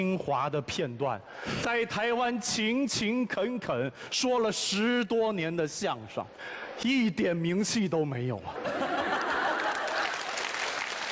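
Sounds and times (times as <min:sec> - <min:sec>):
speech: 0:00.0 - 0:08.9
laughter: 0:08.4 - 0:10.4
crowd applauding at a Taiwanese crosstalk comedy performance: 0:09.0 - 0:11.1.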